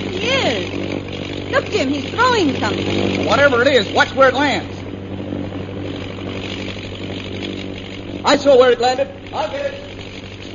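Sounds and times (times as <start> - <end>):
propeller airplane flying overhead: 0.0 - 10.5
speech: 1.5 - 4.7, 8.3 - 9.8.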